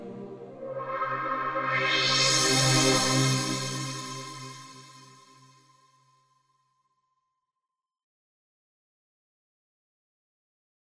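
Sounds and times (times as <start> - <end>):
sweeping synth pad on a Yamaha SY77 SY99: 0.3 - 5.1.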